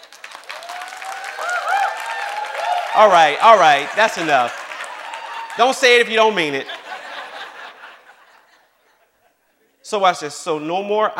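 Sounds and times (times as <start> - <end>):
audience clapping: 0.0 - 7.8
speech: 3.0 - 4.6, 5.6 - 6.7, 9.9 - 11.1
laughter: 6.2 - 9.8.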